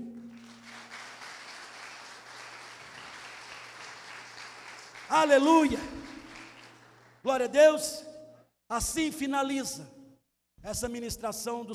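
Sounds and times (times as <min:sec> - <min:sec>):
audience applause: 0:00.0 - 0:07.2
speech: 0:05.1 - 0:06.0, 0:07.2 - 0:08.0, 0:08.7 - 0:10.0, 0:10.6 - 0:11.7.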